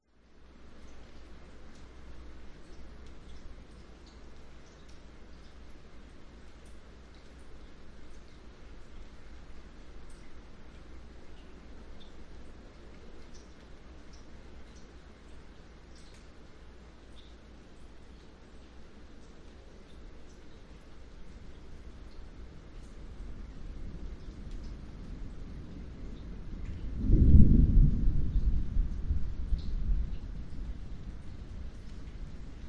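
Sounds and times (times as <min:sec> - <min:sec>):
light rain: 0:00.0 - 0:32.6
roof drips: 0:00.3 - 0:27.0, 0:28.2 - 0:32.6
wind in palm trees: 0:23.3 - 0:32.6.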